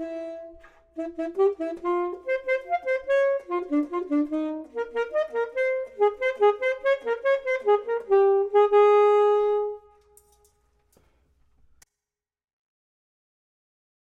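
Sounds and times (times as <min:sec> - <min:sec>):
clarinet: 0:00.0 - 0:10.2
saxophone: 0:00.0 - 0:10.2.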